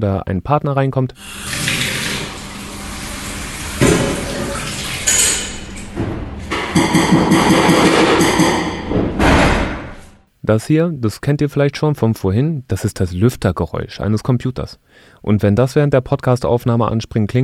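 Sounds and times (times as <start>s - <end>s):
speech: 0.0s - 1.8s, 6.8s - 8.7s, 10.4s - 17.4s
kitchen tap running: 1.2s - 8.6s
dishes or pots being handled: 3.8s - 10.0s.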